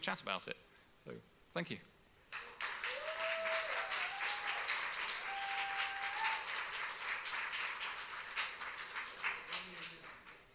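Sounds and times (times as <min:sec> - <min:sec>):
speech: 0:00.0 - 0:01.9
audience applause: 0:02.3 - 0:10.4.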